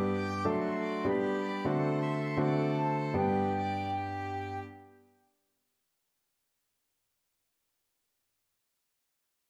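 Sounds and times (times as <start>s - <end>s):
melody for flexible ensemble of three players: 0.0s - 4.8s
piano: 0.0s - 5.1s.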